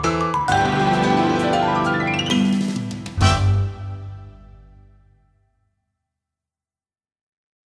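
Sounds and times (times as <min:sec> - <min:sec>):
orchestra effects: 0:00.1 - 0:05.1.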